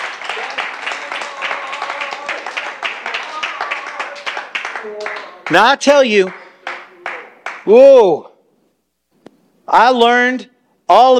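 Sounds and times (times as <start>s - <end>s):
audience clapping hands: 0.0s - 7.8s
speech: 4.8s - 6.4s, 7.6s - 8.3s, 9.7s - 11.1s.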